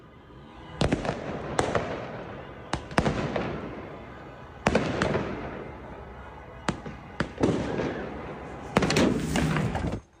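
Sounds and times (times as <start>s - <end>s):
fireworks exploding: 0.7s - 10.1s.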